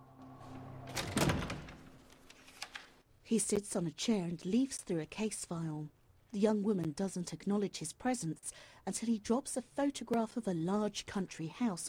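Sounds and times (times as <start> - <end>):
door being unlocked: 0.9 - 1.9
speech: 3.3 - 11.8.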